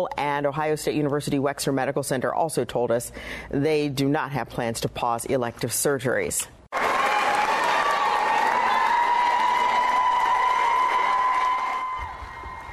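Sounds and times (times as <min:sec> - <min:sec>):
speech: 0:00.0 - 0:06.6
round of applause inside the State House: 0:06.7 - 0:12.7.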